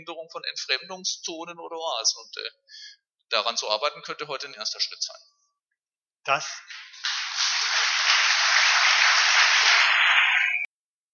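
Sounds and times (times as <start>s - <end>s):
speech: 0.0s - 5.3s, 6.2s - 6.8s
audience applause: 6.7s - 10.6s.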